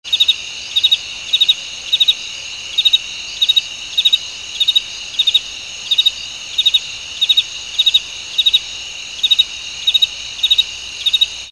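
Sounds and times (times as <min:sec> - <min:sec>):
crickets chirping: 0:00.0 - 0:11.5.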